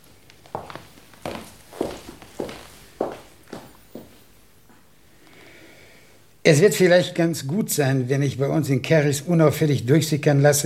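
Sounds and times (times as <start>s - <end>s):
footsteps of a person walking away: 0.0s - 4.9s
speech: 6.5s - 10.6s.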